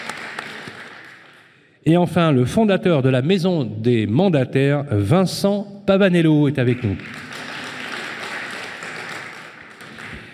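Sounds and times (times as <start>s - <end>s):
audience applause: 0.0s - 1.5s, 6.8s - 10.3s
speech: 1.8s - 7.2s.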